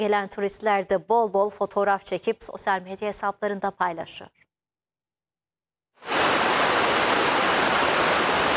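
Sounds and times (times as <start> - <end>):
speech: 0.0 - 4.5
waterfall roaring at a record-high water level after heavy seasonal rain: 6.0 - 8.5.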